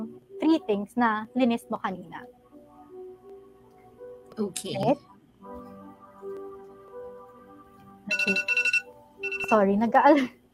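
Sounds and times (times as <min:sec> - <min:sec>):
speech: 0:00.5 - 0:02.4, 0:04.4 - 0:05.1, 0:08.2 - 0:08.6, 0:09.5 - 0:10.4
phone alarm for US market opening ringing: 0:08.1 - 0:09.7.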